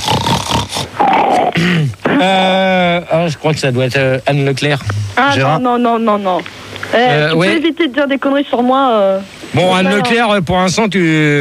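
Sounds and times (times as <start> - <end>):
loud snorting and sniffing: 0.0 - 2.2
speech: 3.2 - 11.3.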